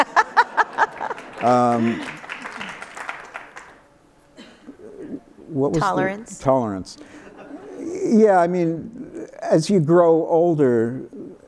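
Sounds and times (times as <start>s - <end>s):
laughter: 0.0s - 3.2s, 7.0s - 9.4s
audience clapping: 0.0s - 3.8s
speech: 1.4s - 2.1s, 5.6s - 7.2s, 8.1s - 11.2s.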